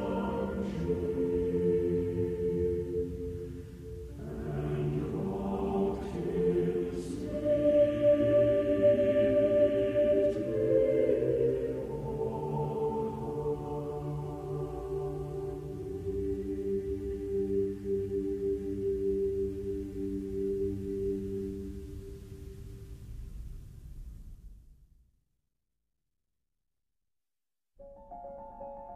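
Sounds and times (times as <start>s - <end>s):
lute lullaby: 0.0s - 22.4s.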